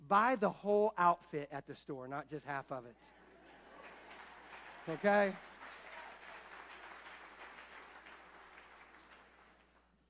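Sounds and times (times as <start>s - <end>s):
speech: 0.1s - 3.2s, 4.8s - 5.5s
older people clapping: 3.2s - 10.0s.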